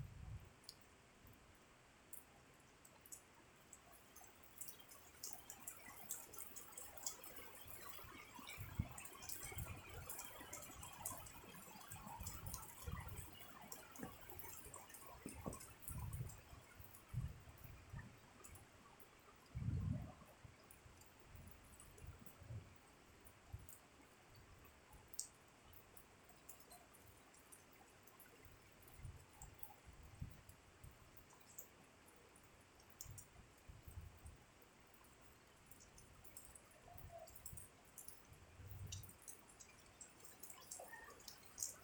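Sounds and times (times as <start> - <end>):
rain at night: 0.0 - 41.8.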